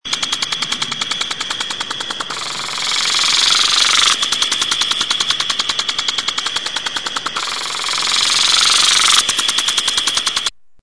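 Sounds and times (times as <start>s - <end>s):
automatic lawn sprinkler: 0.0s - 10.5s.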